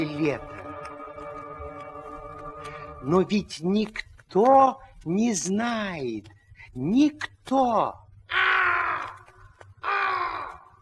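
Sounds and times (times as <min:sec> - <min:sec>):
speech: 0:00.0 - 0:00.5, 0:03.0 - 0:08.4
raven cawing: 0:08.2 - 0:10.7.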